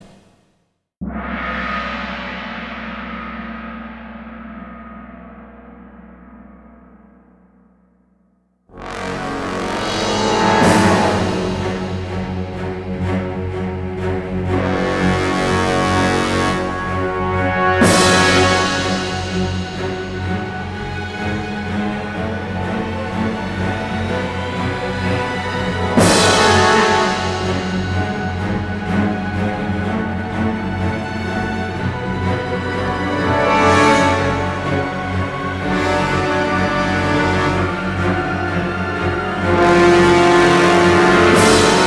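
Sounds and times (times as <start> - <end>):
battle music in F sharp minor: 8.7 - 41.8.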